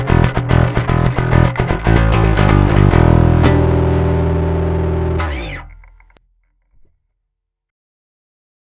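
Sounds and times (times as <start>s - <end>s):
overdriven guitar: 0.0s - 6.2s.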